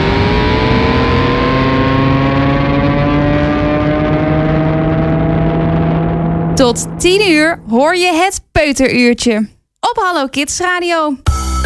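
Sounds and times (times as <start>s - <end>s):
rocket launching: 0.0s - 6.6s
speech: 6.6s - 11.4s.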